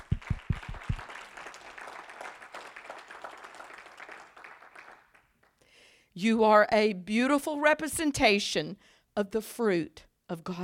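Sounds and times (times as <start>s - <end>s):
audience clapping hands: 0.0s - 5.6s
speech: 6.2s - 10.6s.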